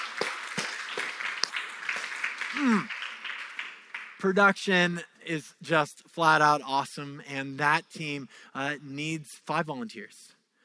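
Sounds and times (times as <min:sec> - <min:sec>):
crowd clapping: 0:00.0 - 0:04.6
speech: 0:02.6 - 0:03.0, 0:04.2 - 0:10.4.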